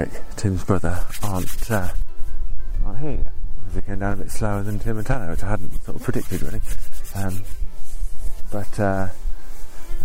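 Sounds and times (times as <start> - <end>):
speech: 0.0 - 2.0, 2.9 - 7.6, 8.5 - 9.2
hands rubbing together to keep warm: 0.6 - 2.0, 4.2 - 10.0.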